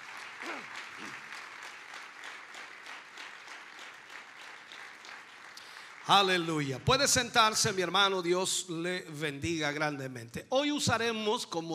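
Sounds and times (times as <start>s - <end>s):
audience applauding: 0.0s - 8.0s
speech: 0.5s - 1.2s, 6.1s - 11.7s.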